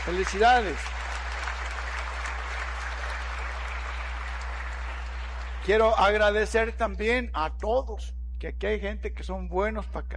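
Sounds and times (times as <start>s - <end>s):
audience applause: 0.0s - 6.0s
low electrical hum: 0.0s - 10.1s
speech: 0.1s - 1.0s, 5.6s - 10.1s.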